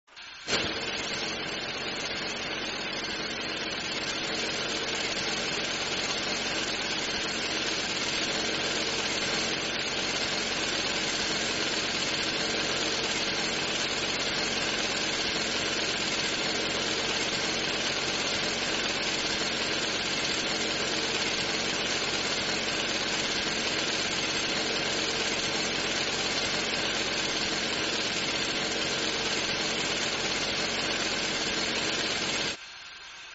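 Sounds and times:
drill: 0:00.1 - 0:33.3.

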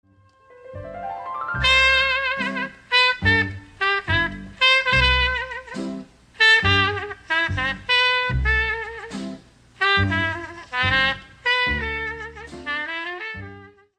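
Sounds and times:
trumpet playing: 0:00.1 - 0:13.9.

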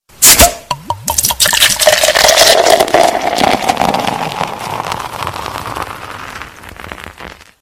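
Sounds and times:
beer being opened: 0:00.2 - 0:05.0
beer being poured: 0:00.7 - 0:07.4.

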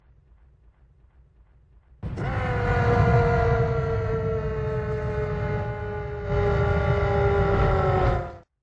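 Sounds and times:
titan roar: 0:02.0 - 0:08.5.

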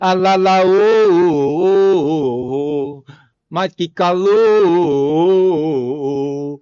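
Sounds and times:
person singing: 0:00.0 - 0:06.6.

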